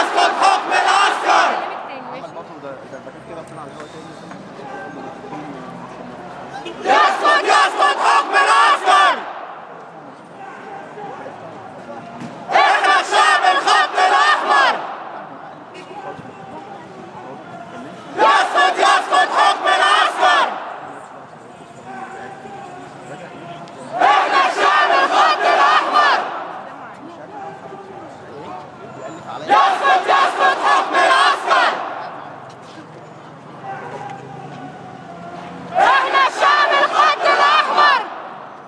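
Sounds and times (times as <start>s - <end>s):
people chanting against military rule with loud echo: 0.0s - 2.0s, 6.7s - 9.4s, 12.5s - 15.2s, 18.1s - 20.9s, 23.9s - 26.7s, 29.5s - 32.4s, 35.7s - 38.4s.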